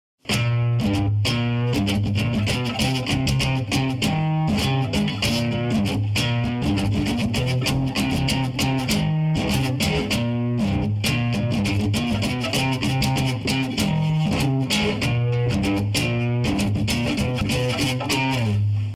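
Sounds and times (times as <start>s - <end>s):
musical riff: 0.3s - 18.9s.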